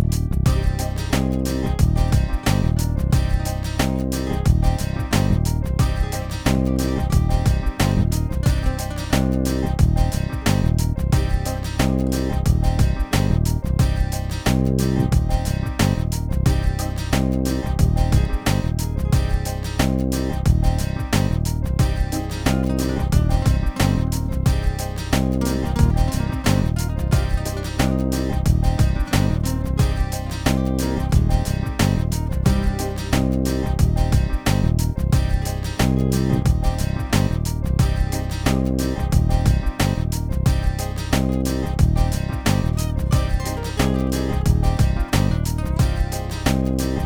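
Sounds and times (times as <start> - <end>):
corporate music: 0.1 - 47.0.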